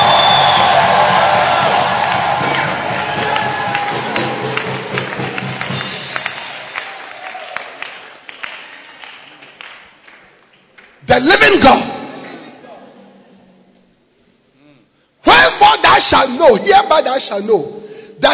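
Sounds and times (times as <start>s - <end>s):
audience clapping and shouting: 0.0s - 11.1s
speech: 11.2s - 11.9s, 16.0s - 18.3s.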